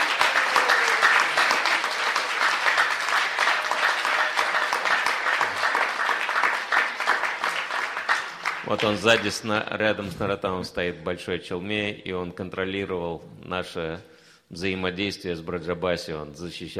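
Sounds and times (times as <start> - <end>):
audience applause: 0.0 - 9.4
speech: 8.7 - 16.7.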